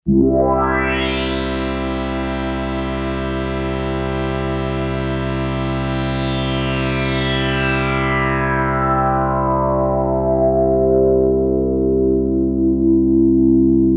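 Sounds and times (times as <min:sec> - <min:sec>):
synthesizer sweep: 0:00.0 - 0:13.8.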